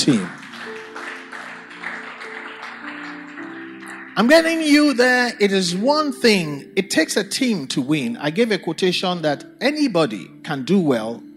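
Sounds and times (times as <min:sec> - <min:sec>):
speech: 0:00.0 - 0:00.4, 0:04.2 - 0:11.3
audience clapping: 0:00.0 - 0:05.4.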